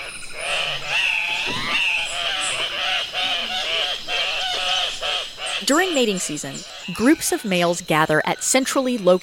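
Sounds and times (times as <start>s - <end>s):
Andean cock-of-the-rock harsh nasal squawks: 0.0s - 7.1s
speech: 5.7s - 9.2s.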